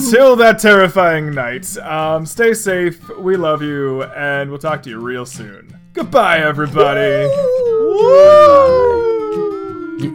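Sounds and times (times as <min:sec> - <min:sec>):
speech: 0:00.1 - 0:09.4
voices imitating ghostly howling: 0:07.0 - 0:10.1.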